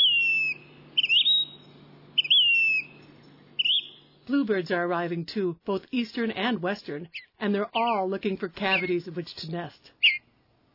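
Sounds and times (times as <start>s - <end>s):
phoebe song, eastern or Say's phoebe: 0.0s - 4.2s, 10.0s - 10.3s
speech: 4.3s - 10.0s.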